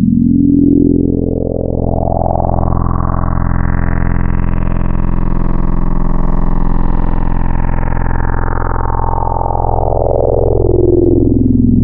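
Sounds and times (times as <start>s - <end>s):
FM wavetable synth tone: 0.0s - 11.8s.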